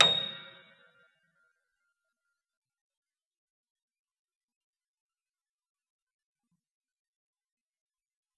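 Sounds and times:
Wurlitzer upright piano hard C7: 0:00.0 - 0:00.8.

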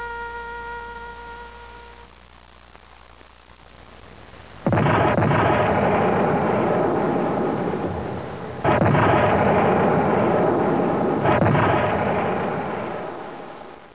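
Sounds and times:
ambient sound: 0:04.7 - 0:13.9.

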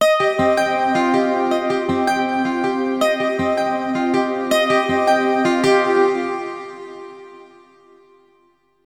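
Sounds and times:
ambient electric guitar at 160 bpm in C: 0:00.0 - 0:07.7.

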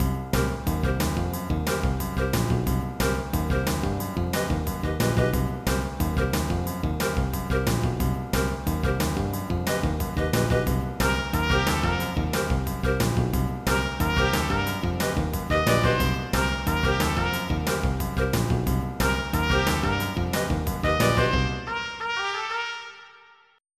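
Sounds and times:
funk music: 0:00.0 - 0:23.0.

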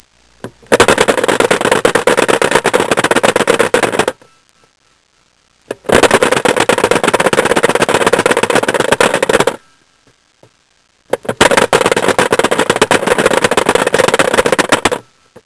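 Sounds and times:
phone rattling: 0:00.4 - 0:04.3, 0:05.7 - 0:09.7, 0:11.1 - 0:15.4.

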